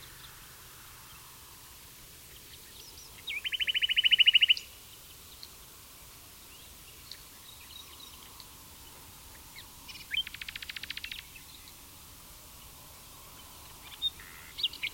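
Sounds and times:
common nightingale Luscinia megarhynchos singing: 0:02.3 - 0:05.6, 0:06.5 - 0:11.8, 0:12.6 - 0:14.9.

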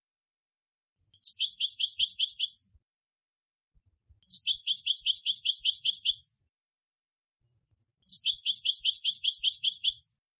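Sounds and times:
European goldfinch twittering: 0:01.2 - 0:02.7, 0:04.3 - 0:06.4, 0:08.1 - 0:10.2.

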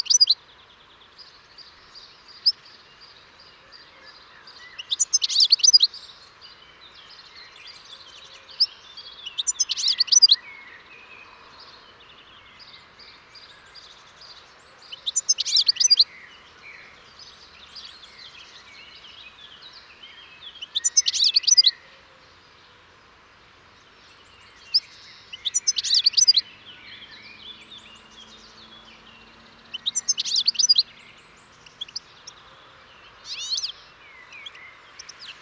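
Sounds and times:
European goldfinch song: 0:00.0 - 0:00.4, 0:04.8 - 0:05.9, 0:09.2 - 0:10.4, 0:14.9 - 0:16.1, 0:20.6 - 0:21.7, 0:24.6 - 0:32.4, 0:33.2 - 0:35.3.

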